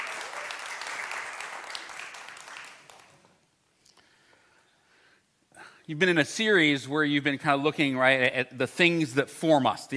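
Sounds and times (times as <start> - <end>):
crowd clapping: 0.0 - 3.4
speech: 5.9 - 9.9.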